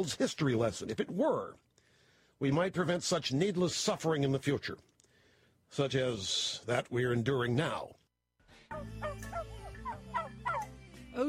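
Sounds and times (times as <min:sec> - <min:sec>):
speech: 0:00.0 - 0:01.7, 0:02.4 - 0:04.9, 0:05.7 - 0:08.0, 0:08.7 - 0:09.4
free-range turkeys gobbling in the countryside: 0:08.7 - 0:10.8.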